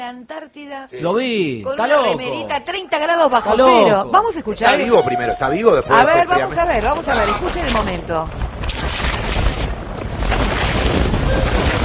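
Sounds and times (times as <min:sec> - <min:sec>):
speech: 0:00.0 - 0:09.0
fierce Antarctic wind at thirty below with gusts up to 135 km/h: 0:04.0 - 0:11.8
Argentine flag flapping in wind: 0:06.0 - 0:11.8.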